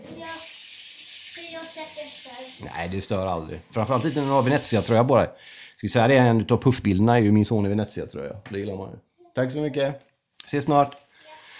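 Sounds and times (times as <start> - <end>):
water being poured: 0.0 - 5.1
speech: 1.6 - 11.0.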